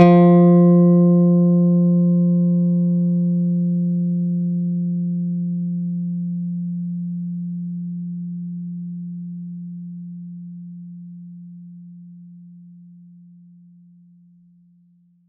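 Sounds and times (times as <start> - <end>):
electric bass note F3: 0.0 - 5.5.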